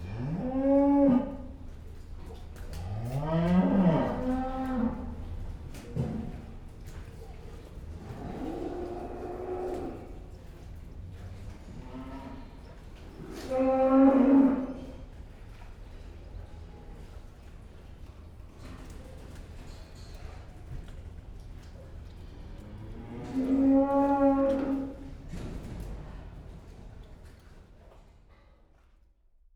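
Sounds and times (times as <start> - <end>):
cow mooing: 0.0 - 1.5, 2.8 - 5.3, 8.0 - 10.3, 13.2 - 14.9, 22.5 - 25.2.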